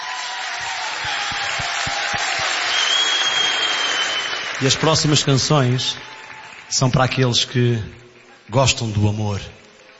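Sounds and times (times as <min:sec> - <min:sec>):
audience applause: 0:00.0 - 0:09.9
speech: 0:04.6 - 0:06.1, 0:06.7 - 0:09.6.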